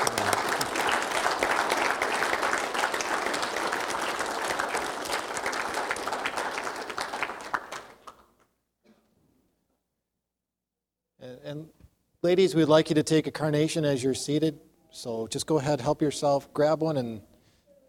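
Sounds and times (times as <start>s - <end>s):
audience clapping applause: 0.0s - 8.5s
speech: 12.2s - 17.3s.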